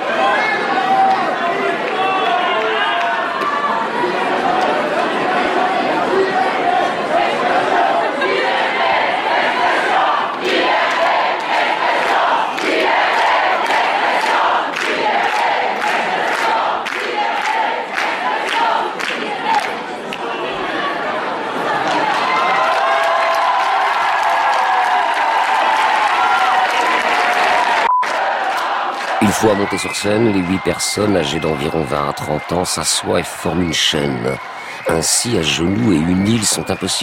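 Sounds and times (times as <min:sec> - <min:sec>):
agitated theatre audience uproar with shouting and chatter: 0:00.0 - 0:37.0
theatre audience rhythmic clapping: 0:10.3 - 0:20.2, 0:26.7 - 0:31.4
speech: 0:29.4 - 0:37.0.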